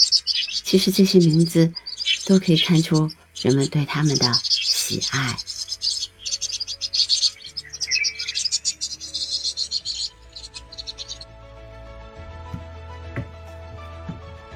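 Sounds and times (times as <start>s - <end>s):
Vinous-throated Parrotbill flock twittering at the Summer Palace: 0.0s - 11.4s
speech: 0.7s - 5.5s.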